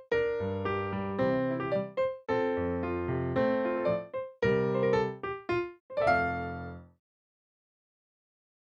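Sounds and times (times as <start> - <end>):
instrumental music: 0.0 - 7.0.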